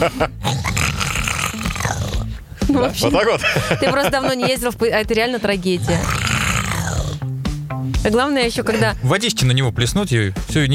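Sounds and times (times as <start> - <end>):
laughter: 0.0 - 0.4, 2.6 - 4.9
speech: 0.0 - 0.8, 1.5 - 6.3, 8.0 - 10.7
voice imitating very loud snoring like a Bengal tiger: 0.2 - 2.4, 5.8 - 7.4.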